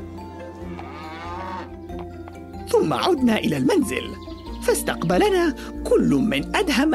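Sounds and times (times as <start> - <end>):
large cow from a livestock market mooing: 0.6 - 1.8
speech: 2.7 - 6.9.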